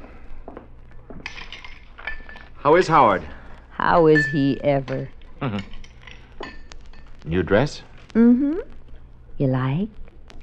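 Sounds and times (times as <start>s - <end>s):
glasses clinking as a drink is mixed: 1.2s - 2.5s, 3.9s - 7.0s
speech: 2.6s - 5.8s, 7.2s - 8.8s, 9.4s - 10.0s
glass chime: 3.9s - 4.8s.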